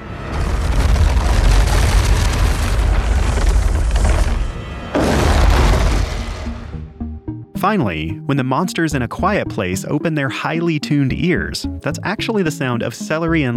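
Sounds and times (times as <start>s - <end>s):
cinder block dragged across wooden floor: 0.3s - 6.8s
speech: 7.6s - 13.5s.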